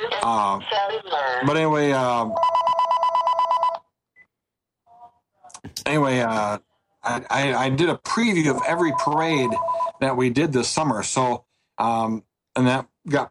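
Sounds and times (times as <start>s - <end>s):
speech: 0.2s - 2.5s, 5.9s - 13.2s
mobile phone ringing with incoming call: 2.2s - 3.9s, 8.5s - 10.0s.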